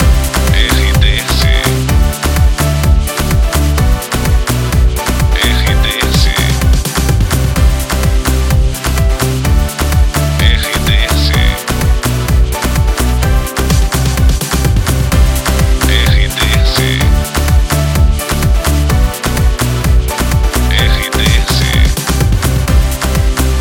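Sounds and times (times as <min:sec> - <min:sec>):
ballad backing track for voiceovers: 0:00.0 - 0:23.5.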